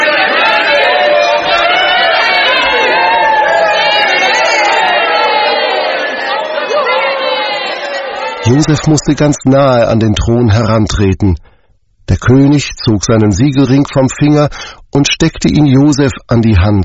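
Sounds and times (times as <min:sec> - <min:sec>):
crowd cheering and shouting in jubilation: 0:00.0 - 0:09.5
whoops: 0:00.4 - 0:08.4
speech: 0:08.5 - 0:11.5, 0:12.1 - 0:16.8.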